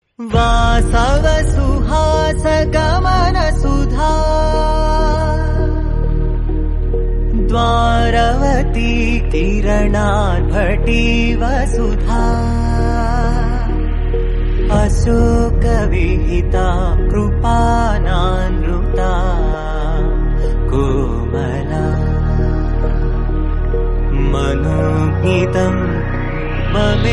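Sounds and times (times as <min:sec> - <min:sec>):
bhajan devotional song: 0:00.2 - 0:27.1.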